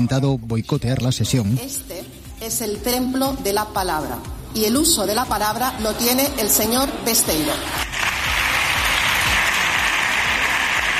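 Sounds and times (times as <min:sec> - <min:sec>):
speech: 0:00.0 - 0:07.9
applause in parliament: 0:07.8 - 0:10.9.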